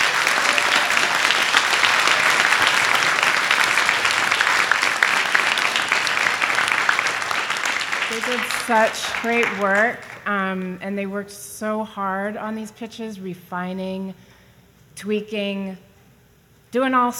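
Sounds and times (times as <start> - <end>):
applause: 0.0 - 10.8
speech: 8.3 - 14.3, 15.0 - 15.9, 16.7 - 17.1.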